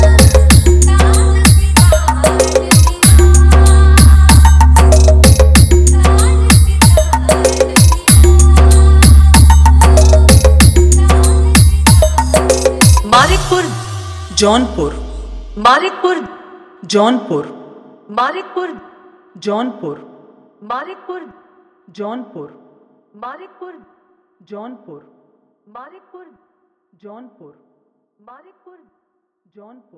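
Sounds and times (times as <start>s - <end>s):
hard vibration: 0.0s - 15.6s.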